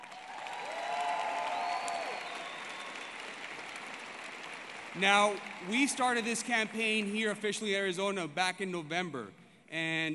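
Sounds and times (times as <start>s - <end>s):
crowd applauding: 0.0s - 7.9s
faint whistle or cheer: 0.4s - 3.4s
speech: 5.0s - 10.1s.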